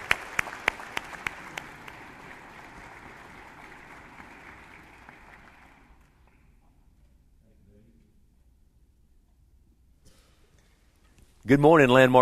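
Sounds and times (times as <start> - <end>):
congregation applause at Landmark Church: 0.0 - 6.4
speech: 11.5 - 12.2.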